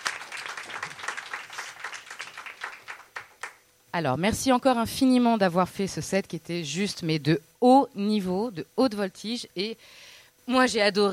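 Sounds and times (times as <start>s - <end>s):
audience applause: 0.0s - 3.6s
speech: 3.9s - 11.1s.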